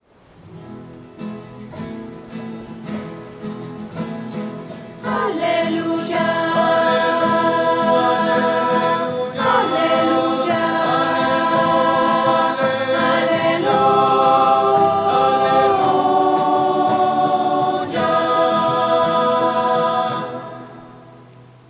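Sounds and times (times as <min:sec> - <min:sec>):
voices: 0:05.0 - 0:21.1.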